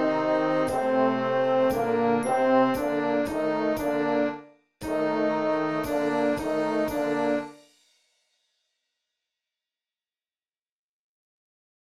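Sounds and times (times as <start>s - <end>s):
concert duet: 0.0s - 7.5s.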